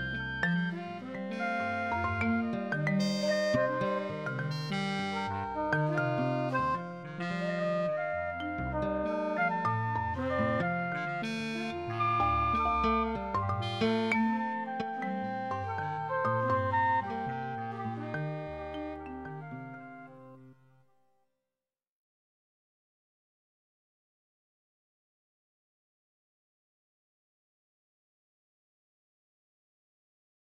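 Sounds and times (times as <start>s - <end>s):
harmonious septimal dorian music: 0.0s - 20.5s.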